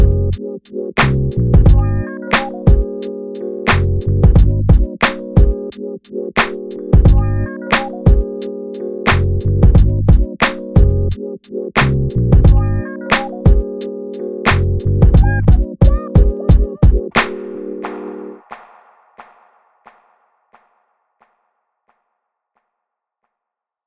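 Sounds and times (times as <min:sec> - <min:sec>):
groove music: 0:00.0 - 0:18.7.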